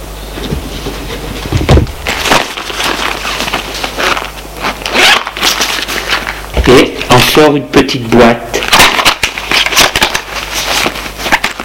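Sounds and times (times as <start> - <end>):
low steady hum: 0.0 - 11.6
crinkly rustling and handling noises: 0.6 - 7.4, 8.6 - 11.6
bag being unzipped: 1.5 - 6.8
speech: 7.4 - 8.6.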